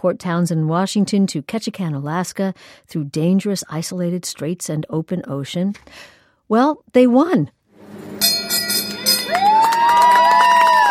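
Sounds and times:
speech: 0.0 - 7.6
bell ringing on the dock in Ketchikan: 8.0 - 9.8
crowd cheering: 8.9 - 10.8.

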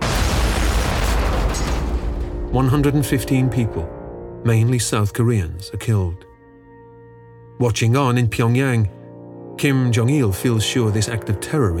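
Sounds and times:
bomb exploding in an overhead storage bin: 0.0 - 2.9
speech: 2.5 - 6.3, 7.6 - 9.0, 9.6 - 11.7.

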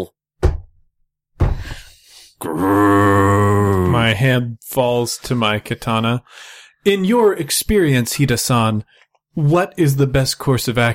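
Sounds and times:
speech: 2.4 - 3.0, 4.0 - 10.9
loud deep growl: 2.4 - 4.0.

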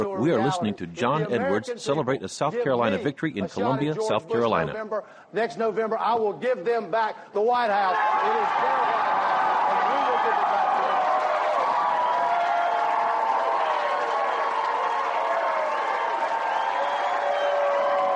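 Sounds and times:
speech: 0.2 - 9.4
crowd cheering at victory rally: 7.7 - 18.1
scattered clapping: 9.0 - 18.1.

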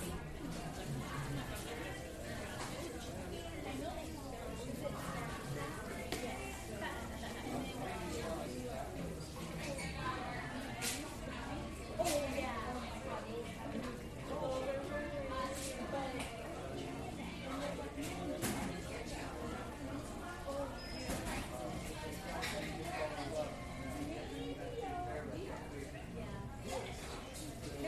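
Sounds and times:
coffee shop murmur of overlapping voices: 0.0 - 27.8.

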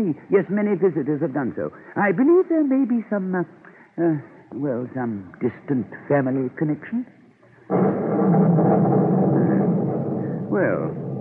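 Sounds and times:
speech: 0.0 - 7.8, 10.5 - 11.1
storm thunder: 7.7 - 11.1.

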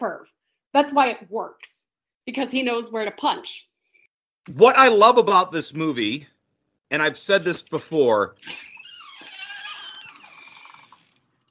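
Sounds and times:
speech: 0.0 - 3.7, 4.5 - 6.3, 6.9 - 8.7
screen door squeaking open: 8.4 - 11.4.

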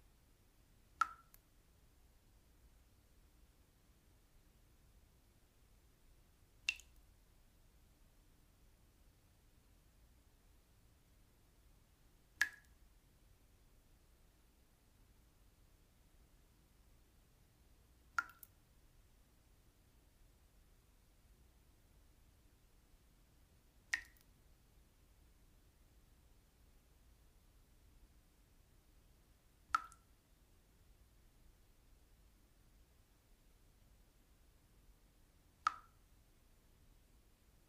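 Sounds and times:
faint low hiss and rumble: 0.0 - 37.6
single water droplets splashing: 1.0 - 1.4, 6.7 - 7.0, 18.2 - 18.5, 24.0 - 24.2, 29.8 - 30.0.

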